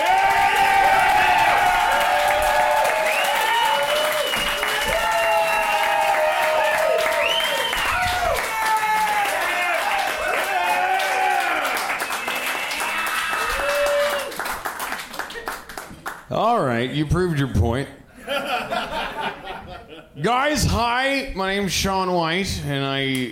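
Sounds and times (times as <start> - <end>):
audience applause welcoming a performer to the stage: 0.0 - 16.3
speech: 17.0 - 18.0, 20.2 - 23.2
laughter: 18.1 - 20.2.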